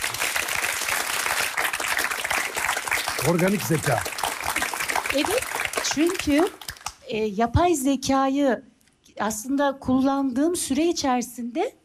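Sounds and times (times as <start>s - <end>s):
audience applause: 0.0s - 7.0s
speech: 3.2s - 4.2s, 5.1s - 11.8s.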